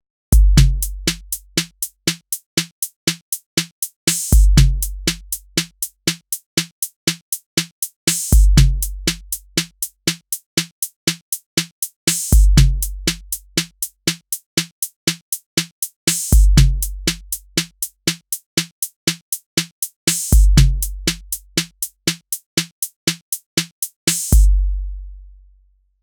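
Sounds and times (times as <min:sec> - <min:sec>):
drums: 0:00.3 - 0:25.0.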